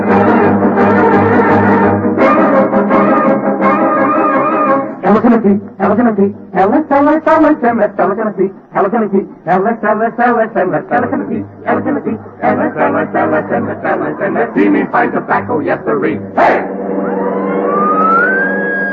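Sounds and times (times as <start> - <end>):
police car siren wailing: 1.0 - 4.9, 16.4 - 18.9
people talking: 5.0 - 16.6.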